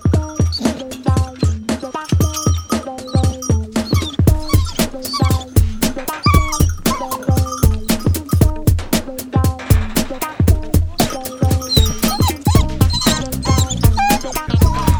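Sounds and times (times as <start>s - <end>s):
funk music: 0.2s - 14.9s.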